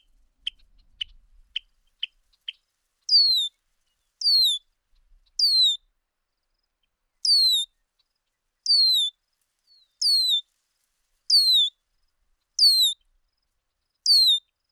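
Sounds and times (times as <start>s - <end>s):
bird calling and singing: 3.1s - 3.5s, 4.2s - 4.6s, 5.4s - 5.8s, 7.2s - 7.6s, 8.7s - 9.1s, 10.0s - 10.4s, 11.3s - 11.7s, 12.6s - 13.0s, 14.1s - 14.4s.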